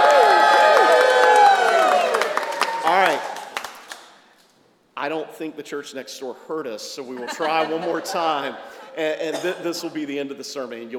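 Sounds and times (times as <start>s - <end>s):
crowd shouting and whooping in enthusiastic praise: 0.0s - 3.5s
speech: 5.0s - 10.9s
laughter: 7.1s - 10.1s.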